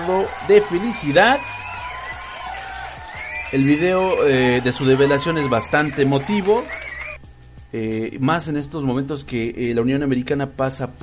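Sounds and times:
speech: 0:00.0 - 0:01.6, 0:03.5 - 0:06.8, 0:07.7 - 0:11.0
applause and cheering: 0:00.0 - 0:07.2.

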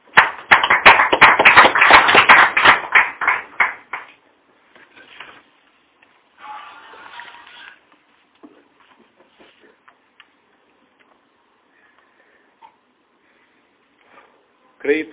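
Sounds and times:
audience applause: 0:00.2 - 0:04.0.

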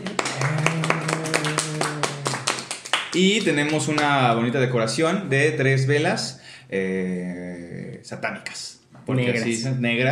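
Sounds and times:
small audience clapping: 0:00.0 - 0:04.4
speech: 0:03.2 - 0:10.1.

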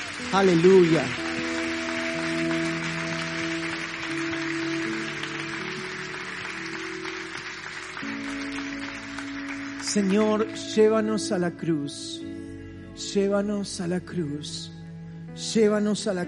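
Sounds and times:
crowd applauding: 0:00.0 - 0:10.6
sustained organ-like chords: 0:00.0 - 0:16.2
speech: 0:00.2 - 0:01.3, 0:10.0 - 0:12.3, 0:13.1 - 0:14.8, 0:15.4 - 0:16.2.

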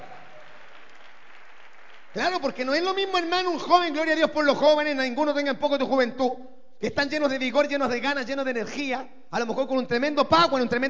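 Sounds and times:
crowd clapping: 0:00.0 - 0:04.2
speech: 0:02.1 - 0:10.8.

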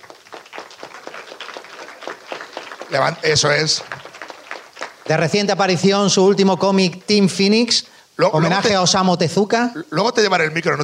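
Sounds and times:
audience applause: 0:00.0 - 0:06.1
speech: 0:02.9 - 0:04.0, 0:05.1 - 0:10.8.

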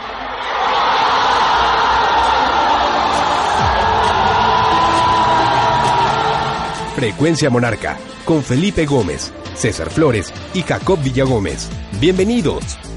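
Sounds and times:
stadium crowd shouting and roaring: 0:00.0 - 0:07.0
speech: 0:07.0 - 0:12.9.

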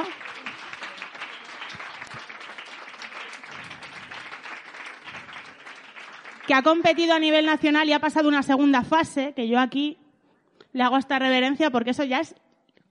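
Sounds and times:
crowd applause: 0:00.0 - 0:06.8
speech: 0:06.5 - 0:10.0, 0:10.7 - 0:12.4.

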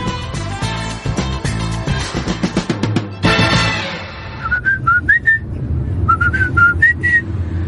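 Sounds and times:
busy instrumental music: 0:00.0 - 0:05.0
whistled children's song melody: 0:04.2 - 0:05.5, 0:06.1 - 0:07.3.

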